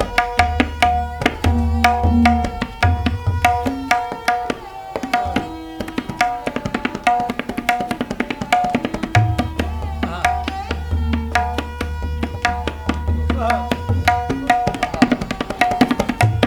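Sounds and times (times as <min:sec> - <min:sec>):
tabla playing: 0:00.0 - 0:16.4.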